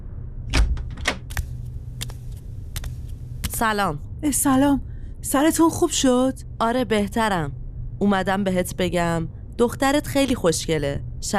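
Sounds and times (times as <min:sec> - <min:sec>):
low steady hum: 0:00.0 - 0:11.3
door opening in a room: 0:00.5 - 0:01.4
speech: 0:03.6 - 0:11.3.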